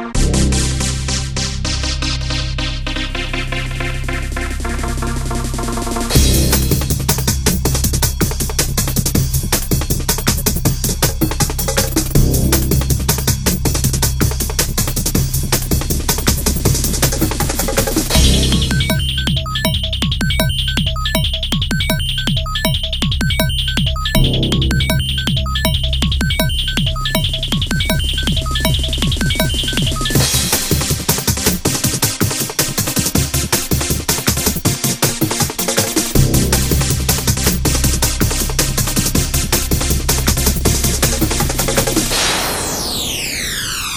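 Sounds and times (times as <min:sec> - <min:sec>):
fight music: 0:00.2 - 0:43.8.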